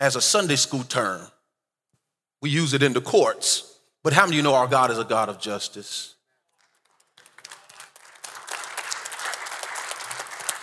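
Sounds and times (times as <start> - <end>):
speech: 0.0 - 1.4, 2.4 - 6.2
audience clapping: 6.5 - 10.6.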